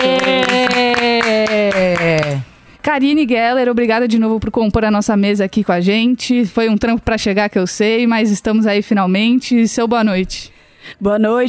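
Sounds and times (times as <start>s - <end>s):
rhythmic hand claps: 0.0s - 2.5s
speech: 2.9s - 11.4s.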